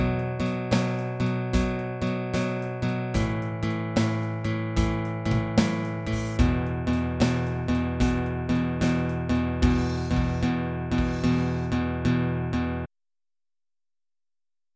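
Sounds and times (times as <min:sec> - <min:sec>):
drums: 0:00.0 - 0:11.8
12 bar blues shuffle in E: 0:00.0 - 0:12.2
guitar: 0:00.0 - 0:12.9.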